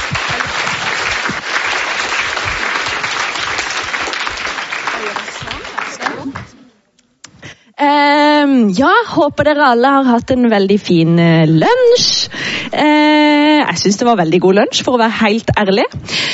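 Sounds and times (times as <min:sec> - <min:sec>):
audience applause: 0:00.0 - 0:06.6
speech: 0:07.8 - 0:16.3.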